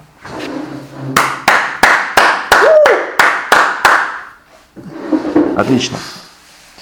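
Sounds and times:
person clapping hands: 1.2s - 4.2s
speech: 5.6s - 6.2s.

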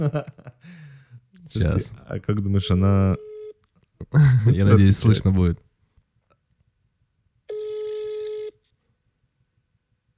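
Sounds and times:
laughter: 0.0s - 0.7s
speech: 0.0s - 0.8s, 1.5s - 3.2s, 4.1s - 5.6s
phone ringback tone beep on speakerphone: 7.5s - 8.6s.

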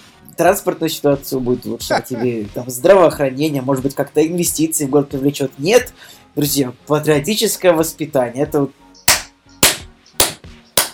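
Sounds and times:
speech: 0.4s - 8.8s
laughter: 1.8s - 2.5s
hand claps to test the connection: 9.1s - 10.9s.

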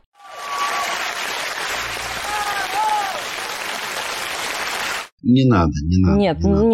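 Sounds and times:
applause: 0.0s - 5.1s
speech: 5.3s - 6.7s.

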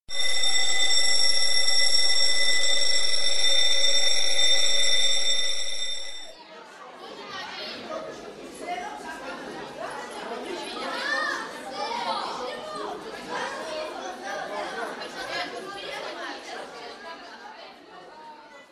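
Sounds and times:
school bell ringing: 0.0s - 6.4s
children chattering: 7.0s - 18.7s.

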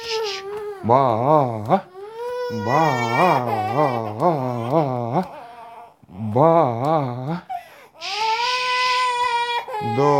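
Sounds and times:
baby crying: 0.0s - 0.9s, 1.9s - 6.0s, 7.6s - 10.1s
speech: 0.8s - 1.9s, 2.5s - 5.4s, 6.1s - 8.2s, 9.8s - 10.1s.

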